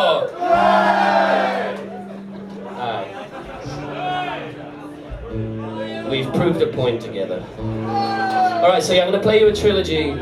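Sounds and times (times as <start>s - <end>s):
audience cheering: 0.0s - 2.1s, 7.9s - 8.8s
laughter: 1.8s - 5.2s
speech: 6.3s - 10.1s.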